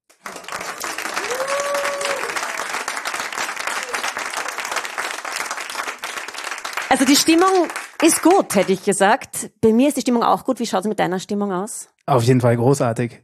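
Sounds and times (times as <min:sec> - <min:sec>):
live audience applause: 0:00.1 - 0:08.9
whoops and cheers: 0:00.9 - 0:02.9, 0:03.6 - 0:04.9
speech: 0:06.9 - 0:13.2.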